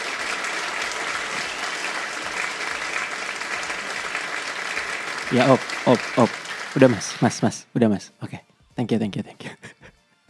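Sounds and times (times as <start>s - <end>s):
audience clapping: 0.0s - 7.6s
speech: 5.3s - 9.8s.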